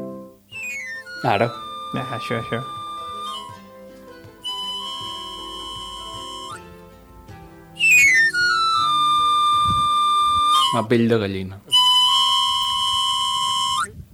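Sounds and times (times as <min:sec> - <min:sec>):
knife sharpener's pan flute tune: 0:00.0 - 0:06.8, 0:07.8 - 0:10.9, 0:11.7 - 0:13.9
speech: 0:01.2 - 0:02.8, 0:10.8 - 0:11.7.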